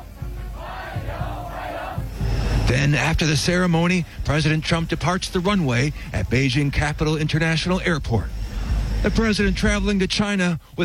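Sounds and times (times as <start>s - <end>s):
hundreds of young people chanting a welcome at Beijing Capital International Airport: 0.0s - 2.7s
speech: 2.7s - 8.4s, 9.0s - 10.8s.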